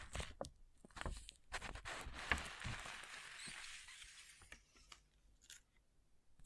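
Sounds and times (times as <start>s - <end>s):
pixel art beads sifting: 1.5s - 4.8s
pixel art beads clattering: 2.1s - 4.3s.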